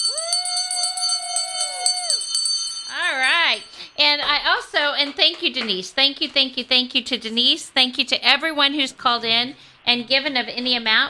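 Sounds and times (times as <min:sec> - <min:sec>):
bell ringing: 0:00.0 - 0:04.1
speech: 0:04.4 - 0:11.0.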